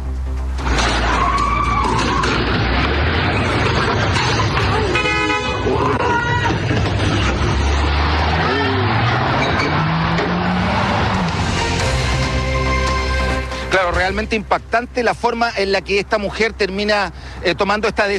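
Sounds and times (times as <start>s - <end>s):
car engine roaring while reversing at speed: 0.0s - 15.3s
tires screeching: 0.5s - 14.1s
people shouting: 1.0s - 2.6s, 4.4s - 6.8s, 8.0s - 12.0s
car horn blasts: 4.9s - 5.8s
speech: 14.1s - 18.1s.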